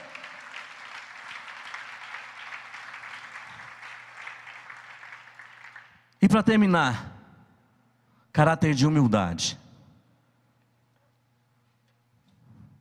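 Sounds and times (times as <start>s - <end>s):
audience applause: 0.0s - 6.0s
speech: 6.3s - 7.1s, 8.4s - 9.6s.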